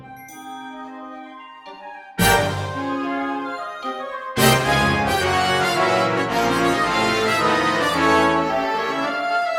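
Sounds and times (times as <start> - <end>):
little polka band playing: 2.2 - 3.2, 4.4 - 9.5.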